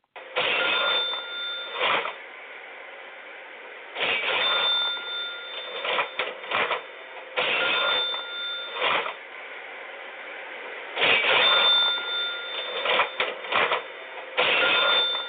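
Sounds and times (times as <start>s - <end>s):
cash registers opening and closing: 0.2s - 2.2s, 4.0s - 9.2s, 11.0s - 15.2s.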